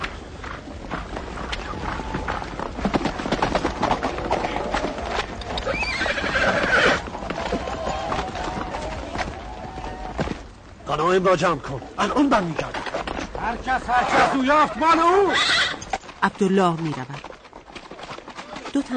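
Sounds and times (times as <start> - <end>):
horse hooves clip-clopping: 0.0 - 18.9
horse neighing: 4.2 - 9.0, 13.9 - 16.0
speech: 11.1 - 12.8, 13.5 - 15.6, 16.2 - 17.2, 18.8 - 18.9.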